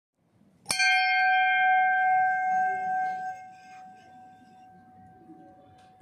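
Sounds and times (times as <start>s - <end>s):
bell: 0.7s - 6.0s.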